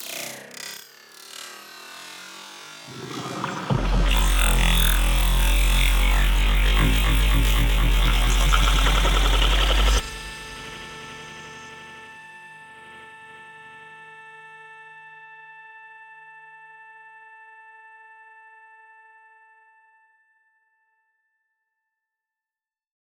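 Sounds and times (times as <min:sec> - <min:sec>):
granular processed sound: 0:02.8 - 0:10.5.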